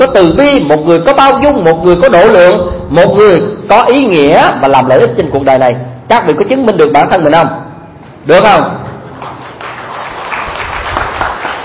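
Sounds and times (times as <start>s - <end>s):
speech: 0.0s - 7.6s, 8.2s - 8.8s
audience applause during a Buddhist sermon: 9.2s - 11.6s.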